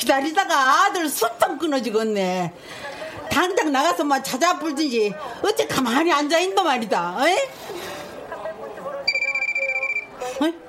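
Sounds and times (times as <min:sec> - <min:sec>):
speech: 0:00.0 - 0:07.8, 0:10.3 - 0:10.6
talking: 0:01.2 - 0:10.6
mobile phone ringing: 0:09.1 - 0:10.3.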